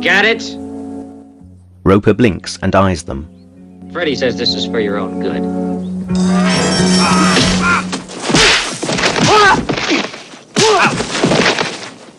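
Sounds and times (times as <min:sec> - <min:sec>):
speech: 0:00.0 - 0:00.6, 0:01.8 - 0:07.4
men grunting and crying out: 0:06.2 - 0:08.5, 0:09.1 - 0:11.1
leaping kicks landing in a fistfight: 0:07.4 - 0:11.9.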